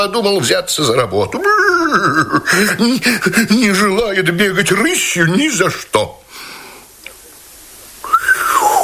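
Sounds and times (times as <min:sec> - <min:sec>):
speech: 0:00.0 - 0:06.2
laughter: 0:01.3 - 0:03.0
whistle sound effect: 0:08.1 - 0:08.7.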